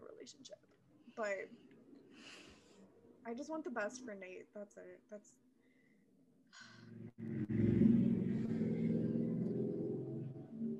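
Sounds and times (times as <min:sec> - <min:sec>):
speech: 0:00.2 - 0:00.6, 0:01.2 - 0:01.6, 0:03.2 - 0:05.4
motorcycles idling and revving outside: 0:07.1 - 0:10.4.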